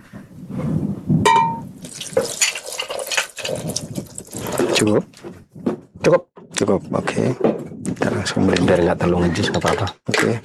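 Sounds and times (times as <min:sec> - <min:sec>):
sharp tonal ping: 0:01.3 - 0:01.7
water being added to yogurt: 0:01.8 - 0:05.0
speech: 0:04.8 - 0:05.2, 0:06.0 - 0:07.6, 0:08.2 - 0:10.4.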